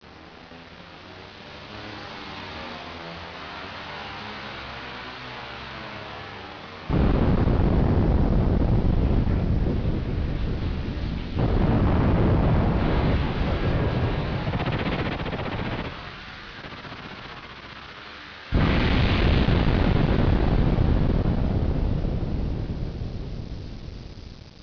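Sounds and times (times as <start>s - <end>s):
blast: 6.9s - 24.6s.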